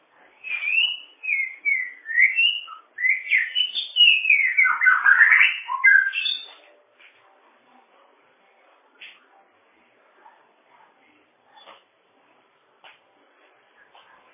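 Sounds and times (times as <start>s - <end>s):
bird song: 0.4s - 6.6s.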